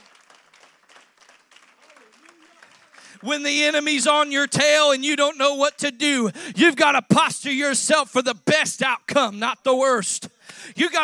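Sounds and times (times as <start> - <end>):
audience hand clapping in praise: 0.0 - 4.5
speech: 3.2 - 11.0.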